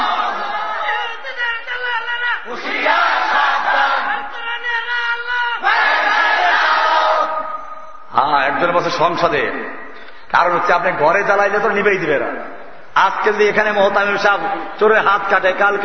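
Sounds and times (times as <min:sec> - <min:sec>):
crowd chanting cries: 0:00.0 - 0:01.2, 0:02.4 - 0:04.8, 0:05.5 - 0:07.6
large crowd shouting in unison at a religious rally: 0:00.0 - 0:07.7
speech: 0:08.6 - 0:15.8.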